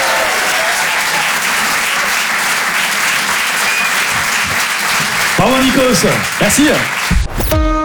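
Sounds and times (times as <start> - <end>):
faint cheers: 0.0 - 1.7
audience applause at comedy club: 0.0 - 7.2
speech: 5.4 - 7.7.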